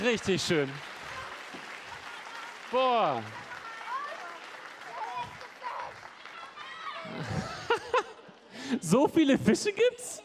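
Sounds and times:
speech: 0.0 - 0.9, 2.7 - 3.4, 8.7 - 10.2
audience applause: 0.0 - 8.7
laughter: 6.3 - 9.0.

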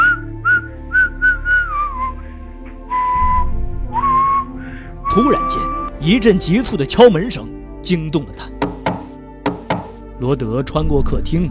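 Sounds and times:
person whistling a cheerful little tune: 0.0 - 2.2, 2.9 - 5.9
speech: 5.2 - 8.6, 10.2 - 11.4.

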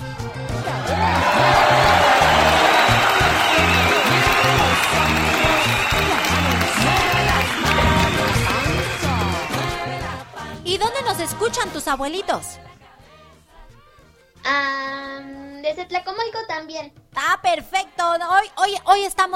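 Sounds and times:
crowd applause: 0.4 - 10.5
cheers and whoops: 0.5 - 10.2
speech: 11.6 - 12.7, 14.5 - 14.8, 15.7 - 19.3.

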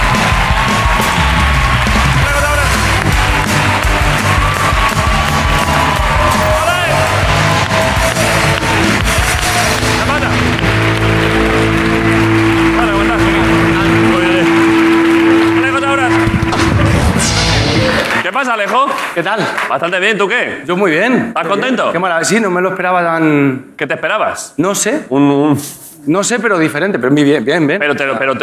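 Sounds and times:
studio audience applause: 0.0 - 20.1
steady tone: 9.8 - 18.2
speech: 18.6 - 28.4.

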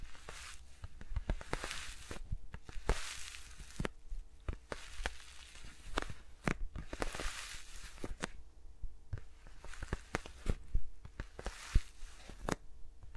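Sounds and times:
soft brushing swishes: 0.0 - 8.4, 9.3 - 12.5.

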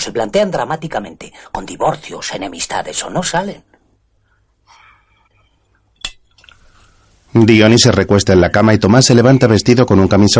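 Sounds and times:
speech: 0.0 - 3.8, 7.3 - 10.3
drinking glass clinking as it is picked up: 5.4 - 6.6.

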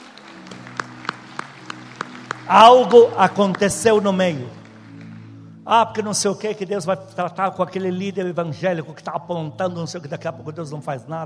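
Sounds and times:
audience applauding: 0.0 - 5.6
speech: 2.5 - 4.6, 5.7 - 11.2.

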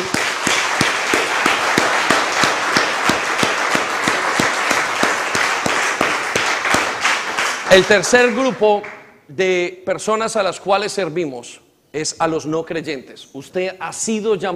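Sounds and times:
crowd applauding: 0.0 - 9.0
speech: 7.7 - 14.5.

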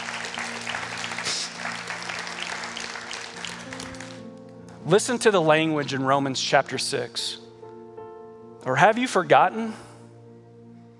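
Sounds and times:
audience clapping: 0.0 - 4.4
speech: 4.8 - 7.4, 8.6 - 9.9.

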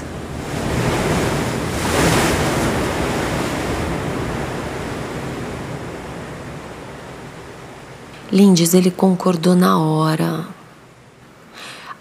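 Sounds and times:
ocean waves crashing against rocks: 0.0 - 8.0
speech: 8.3 - 10.5.

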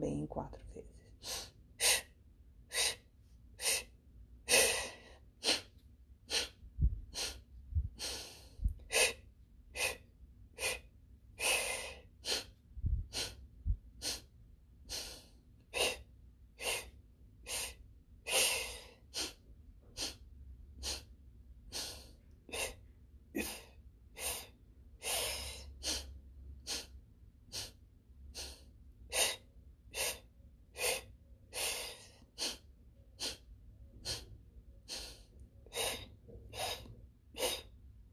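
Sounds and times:
speech: 0.0 - 1.5
paced breathing in through the mouth and out through the nose: 2.7 - 38.1.

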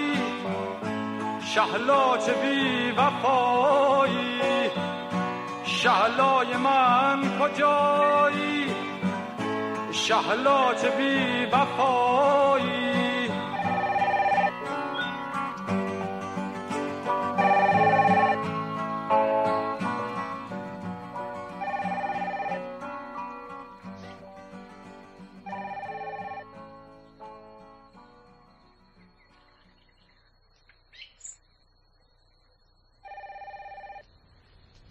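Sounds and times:
music: 0.0 - 29.8
speech: 1.5 - 5.0, 5.8 - 8.8, 10.0 - 13.0
telephone ringing: 13.5 - 14.6, 17.3 - 18.6, 21.6 - 22.8, 25.4 - 26.6, 33.0 - 34.0.

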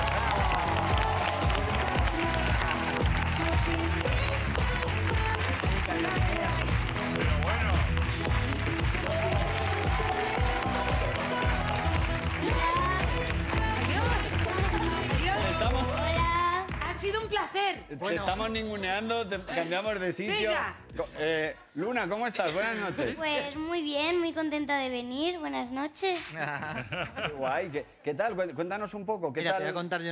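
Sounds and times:
people cheering: 0.0 - 16.5
large audience applause: 0.0 - 17.0
music: 0.0 - 25.4
speech: 18.5 - 30.1
laughter: 26.2 - 27.7.

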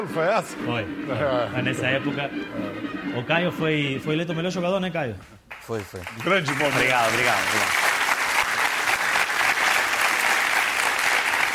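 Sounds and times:
speech: 0.0 - 7.8
studio audience applause: 5.5 - 11.5.

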